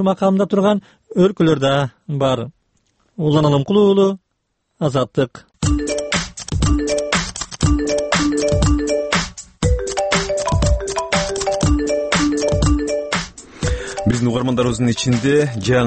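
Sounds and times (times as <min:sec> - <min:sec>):
speech: 0:00.0 - 0:02.6, 0:03.2 - 0:04.2, 0:04.8 - 0:05.5, 0:14.2 - 0:15.8
iPhone ringtone melody: 0:05.6 - 0:15.8.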